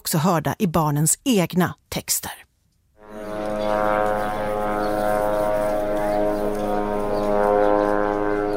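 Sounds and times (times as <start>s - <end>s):
speech: 0.1s - 2.4s
Israeli military surveillance drone Sanana over the Gaza Strip: 3.0s - 8.5s.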